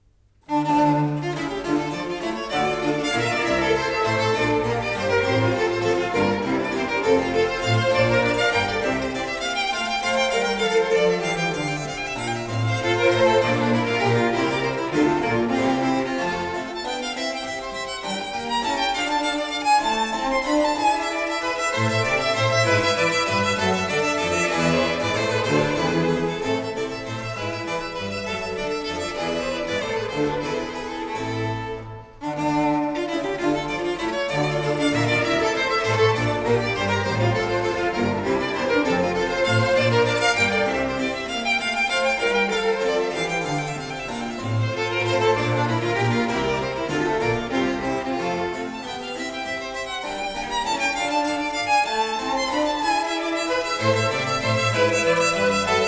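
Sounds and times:
violin sonata in D minor, allegro corrente movement: 0.0s - 55.8s.

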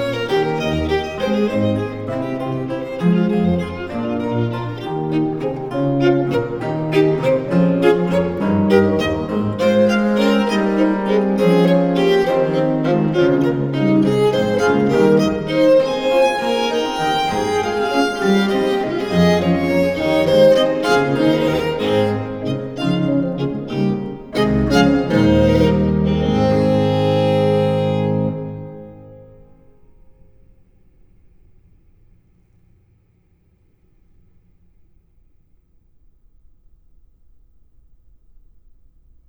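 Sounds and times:
violin sonata in B-flat major: 0.0s - 30.5s.

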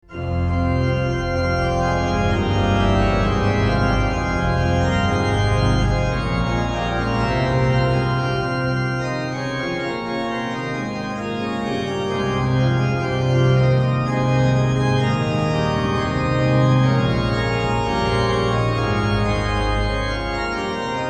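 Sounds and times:
organ partita: 0.0s - 21.0s.

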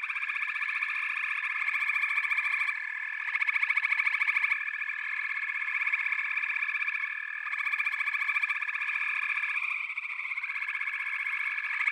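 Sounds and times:
many frogs in chorus: 0.0s - 11.9s.

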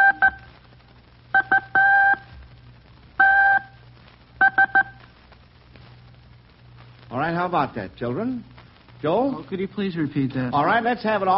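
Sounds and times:
Morse code telegraph message in a high-pitched tone: 0.0s - 0.5s, 1.4s - 2.3s, 3.2s - 3.8s, 4.4s - 5.0s
faint low hum: 0.0s - 11.3s
speech: 7.4s - 11.3s.

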